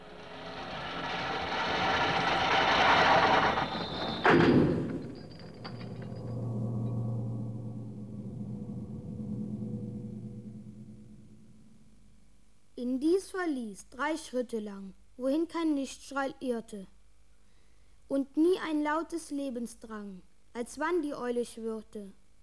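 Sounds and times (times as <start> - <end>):
drawbridge chains rattling and grinding: 0.0 - 9.0
low mechanical rumble: 0.0 - 12.6
heavy thud of drawbridge: 0.5 - 11.8
speech: 4.3 - 4.7, 13.7 - 17.0, 18.1 - 22.2.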